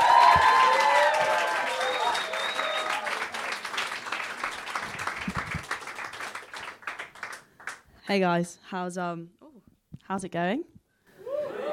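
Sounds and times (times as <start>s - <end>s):
crowd whooping: 0.0s - 3.6s, 11.2s - 11.7s
crowd clapping to welcome a performer to the stage: 0.0s - 7.9s
speech: 8.1s - 9.4s, 10.1s - 10.7s.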